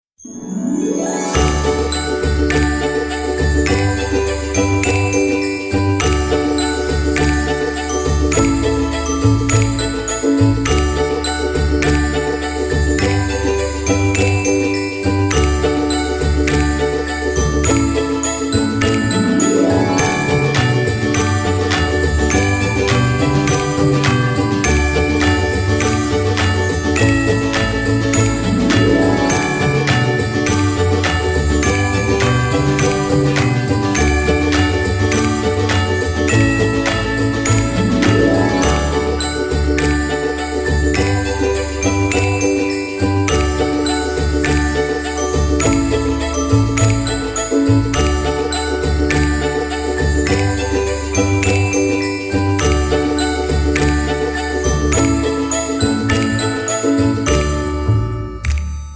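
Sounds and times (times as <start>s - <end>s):
Christmas background music: 0.1s - 58.9s.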